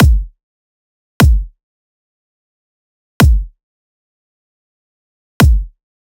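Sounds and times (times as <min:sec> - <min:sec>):
dubstep kick drum loop: 0:00.0 - 0:00.3, 0:01.2 - 0:01.4, 0:03.2 - 0:03.4, 0:05.4 - 0:05.7.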